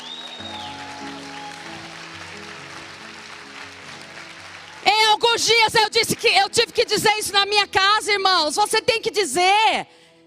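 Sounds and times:
audience applauding: 0:00.0 - 0:07.6
speech: 0:05.2 - 0:10.0.

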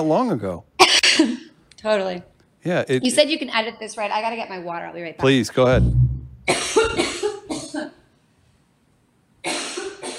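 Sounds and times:
speech: 0:00.0 - 0:07.0
person coughing: 0:06.4 - 0:08.0, 0:09.4 - 0:10.1.

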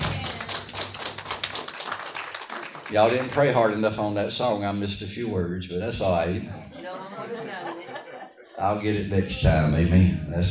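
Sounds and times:
audience hand clapping: 0:00.0 - 0:04.0
speech: 0:02.9 - 0:07.6, 0:08.6 - 0:10.5
laughter: 0:06.4 - 0:09.9.

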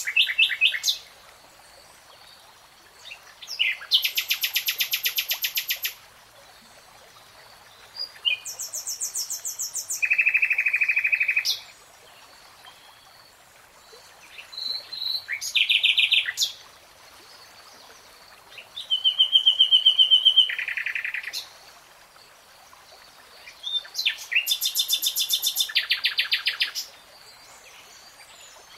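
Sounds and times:
nightingale song: 0:00.0 - 0:02.3, 0:03.0 - 0:06.0, 0:07.6 - 0:13.2, 0:14.2 - 0:16.6, 0:18.5 - 0:21.5, 0:23.4 - 0:28.7.

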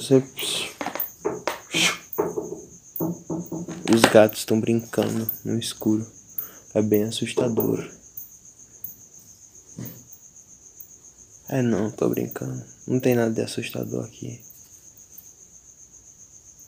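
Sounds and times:
speech: 0:00.0 - 0:00.6, 0:03.9 - 0:06.2, 0:06.8 - 0:08.0, 0:11.5 - 0:14.5
cricket chirping: 0:00.0 - 0:16.6.

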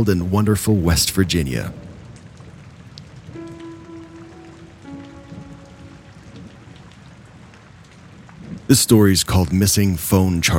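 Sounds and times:
speech: 0:00.0 - 0:01.9, 0:08.7 - 0:10.5
rain: 0:00.0 - 0:10.5.

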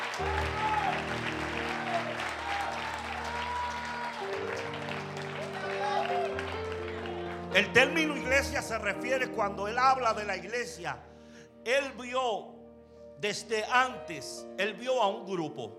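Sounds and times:
audience applause: 0:00.0 - 0:08.4
organ or keyboard chords: 0:00.0 - 0:15.7
speech: 0:07.6 - 0:12.5, 0:13.2 - 0:15.7.

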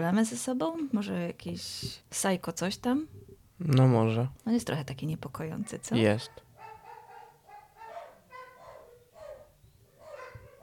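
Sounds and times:
speech: 0:00.0 - 0:06.4
dogs barking outside the window: 0:05.5 - 0:10.6.

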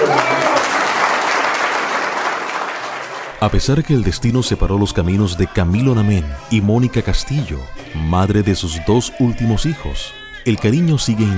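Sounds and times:
applause: 0:00.0 - 0:03.5
speech: 0:03.4 - 0:11.3.

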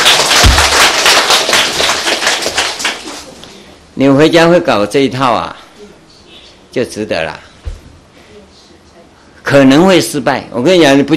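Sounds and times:
audience clapping: 0:00.0 - 0:03.3
speech: 0:04.0 - 0:05.6, 0:06.8 - 0:07.5, 0:09.5 - 0:11.1.

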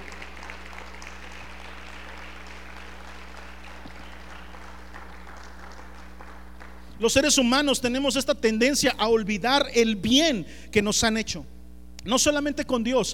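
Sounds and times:
audience applause: 0:00.0 - 0:07.0
speech: 0:07.0 - 0:13.1.

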